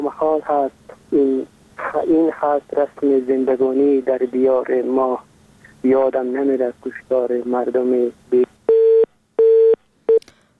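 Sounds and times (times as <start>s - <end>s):
speech: 0.2s - 8.5s
busy-signal tones on a phone line after a dropped call-in show call: 8.7s - 10.2s.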